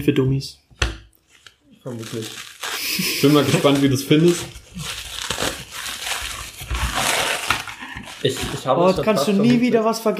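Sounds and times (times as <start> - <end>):
speech: 0.0 - 0.6, 1.8 - 5.0, 8.2 - 10.1
gift wrapping paper crinkling and tearing: 1.3 - 9.7.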